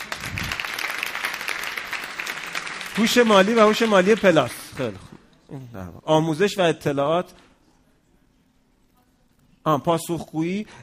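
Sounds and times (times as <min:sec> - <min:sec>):
applause in a sales training class: 0:00.0 - 0:05.1
speech: 0:03.0 - 0:07.5, 0:09.6 - 0:10.8.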